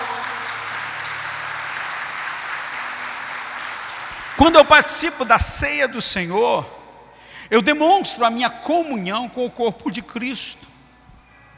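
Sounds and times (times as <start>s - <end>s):
audience applauding: 0.0s - 5.4s
speech: 4.4s - 6.8s, 7.5s - 10.7s.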